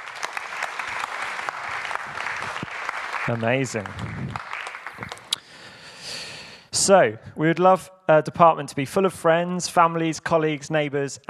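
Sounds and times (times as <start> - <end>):
audience applause: 0.0 - 5.6
speech: 3.3 - 5.1, 6.9 - 11.2.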